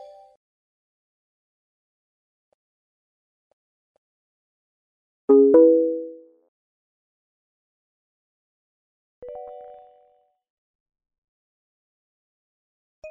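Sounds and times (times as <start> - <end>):
notification sound: 5.3 - 6.3.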